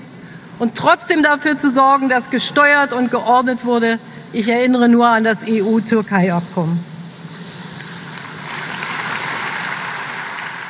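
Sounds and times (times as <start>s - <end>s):
speech: 0.6s - 6.9s
sparse applause from party delegates: 7.4s - 10.6s.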